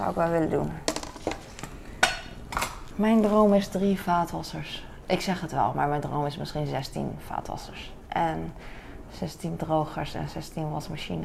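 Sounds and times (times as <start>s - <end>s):
speech: 0.0s - 1.4s, 3.0s - 11.2s
dishes clinking while being handled: 0.8s - 2.9s.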